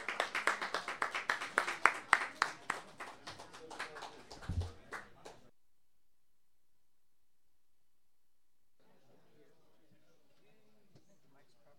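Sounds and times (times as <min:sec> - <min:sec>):
audience round of applause: 0:00.0 - 0:05.5.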